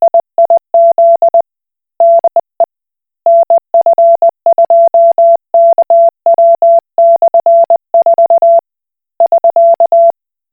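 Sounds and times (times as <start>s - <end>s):
Koch Morse code beeps: 0.1s - 1.4s, 2.0s - 2.4s, 3.3s - 8.6s, 9.2s - 10.1s.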